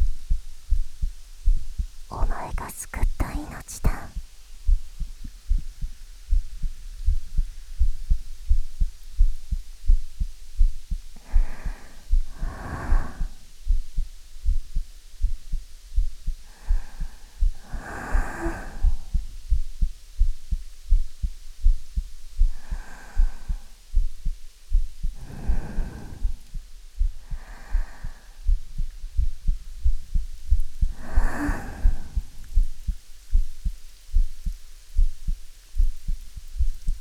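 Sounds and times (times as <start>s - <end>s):
heartbeat: 0.0s - 37.0s
speech: 2.5s - 4.2s.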